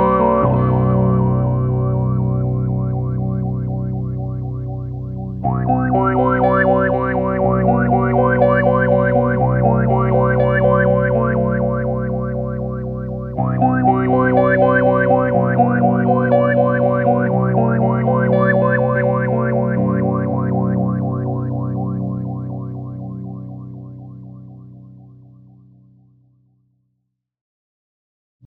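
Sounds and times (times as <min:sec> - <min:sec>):
filter effect: 0:00.2 - 0:25.1.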